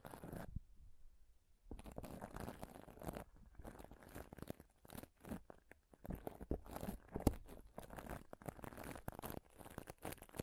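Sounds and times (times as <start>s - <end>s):
scratching and rubbing on a microphone: 0.0s - 0.6s, 1.7s - 10.4s.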